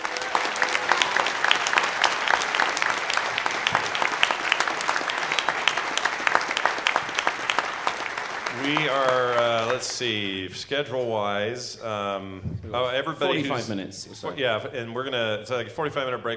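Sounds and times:
audience applause for a panel: 0.0s - 10.5s
speech: 10.0s - 16.3s.

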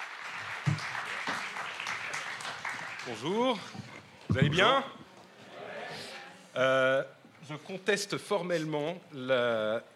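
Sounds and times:
audience applause: 0.0s - 4.0s
speech: 3.1s - 5.0s, 6.6s - 9.9s.

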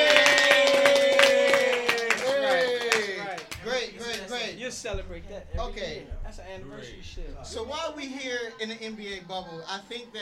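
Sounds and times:
voices cheering and whooping: 0.0s - 3.3s
hand clapping from several people: 0.0s - 6.2s
speech: 4.8s - 10.1s.

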